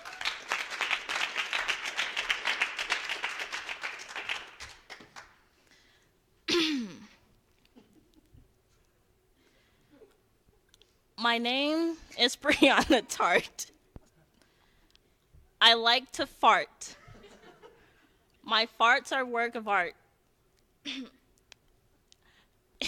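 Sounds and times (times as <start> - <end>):
audience applause: 0.0 - 5.4
speech: 11.3 - 13.7, 15.7 - 17.0, 18.6 - 20.0.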